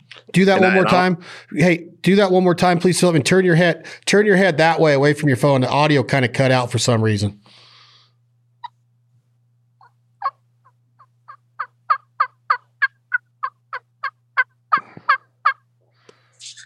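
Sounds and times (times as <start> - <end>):
faint low hum: 0.0 - 16.6
speech: 0.3 - 7.6
soft turkey call on a mouth call: 9.8 - 15.6.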